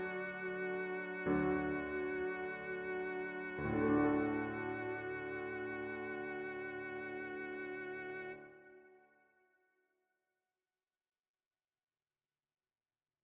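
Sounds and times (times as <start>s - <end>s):
easy viola playing: 0.0s - 8.6s.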